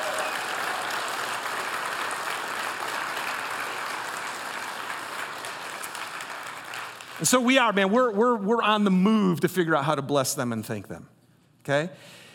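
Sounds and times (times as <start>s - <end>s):
audience applause for a church: 0.0s - 7.7s
speech: 7.2s - 11.1s, 11.7s - 12.2s.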